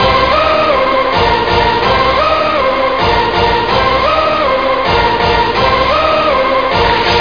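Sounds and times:
techno music: 0:00.0 - 0:07.1.

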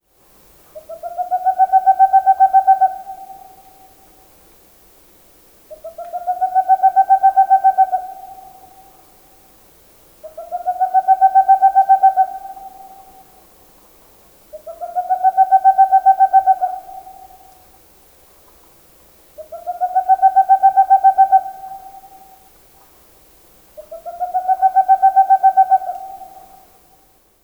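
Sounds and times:
barred owl calling: 0:00.7 - 0:04.0, 0:05.7 - 0:09.0, 0:10.2 - 0:13.4, 0:14.5 - 0:17.6, 0:19.4 - 0:22.4, 0:23.8 - 0:26.8.

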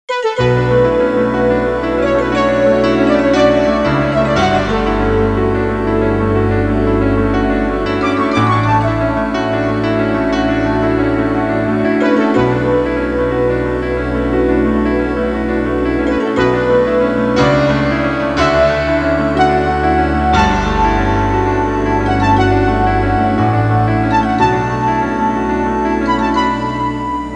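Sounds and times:
synth music: 0:00.1 - 0:27.3.

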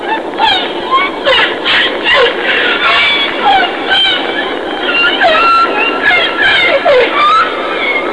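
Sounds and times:
whale calls: 0:00.0 - 0:08.1.

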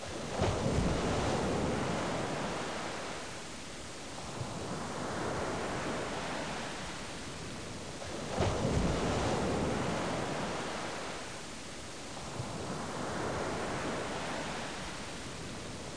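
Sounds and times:
waves: 0:00.0 - 0:15.9.

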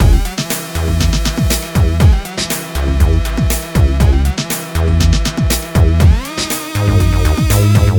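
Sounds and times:
groovebox beat: 0:00.0 - 0:07.9.

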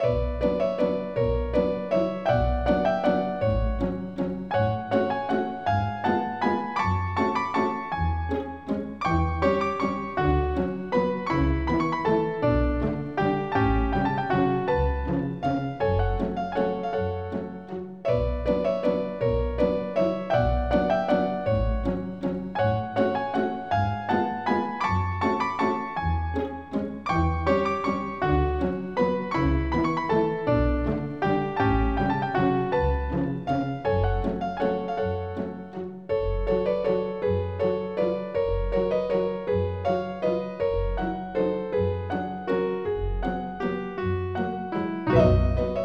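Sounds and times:
waltz music: 0:00.0 - 0:45.8.

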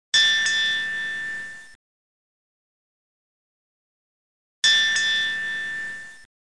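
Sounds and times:
boat bell: 0:00.2 - 0:01.8, 0:04.6 - 0:06.3.

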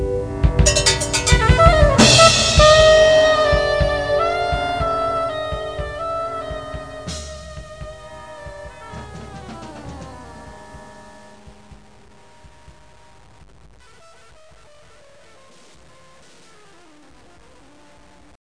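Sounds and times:
music beat: 0:00.1 - 0:13.2.

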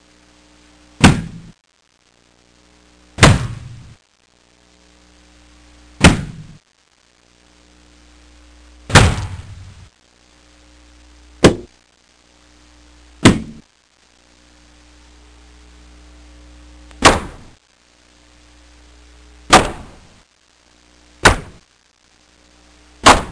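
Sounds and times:
various thuds: 0:01.0 - 0:01.5, 0:03.2 - 0:03.9, 0:06.0 - 0:06.6, 0:08.9 - 0:09.7, 0:11.4 - 0:11.7, 0:13.2 - 0:13.6, 0:17.0 - 0:17.5, 0:21.2 - 0:21.6, 0:23.0 - 0:23.3.

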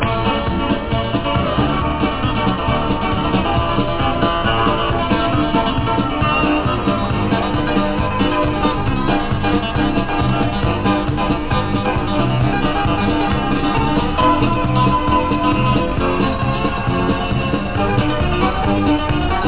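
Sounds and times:
dance music: 0:00.0 - 0:19.4.

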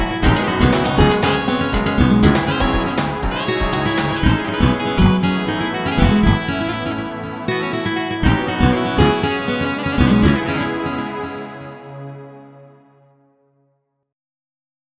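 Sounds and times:
funk music: 0:00.0 - 0:11.6.

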